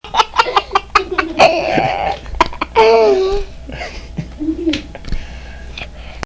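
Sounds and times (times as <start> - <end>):
person laughing: 0.0 - 5.0.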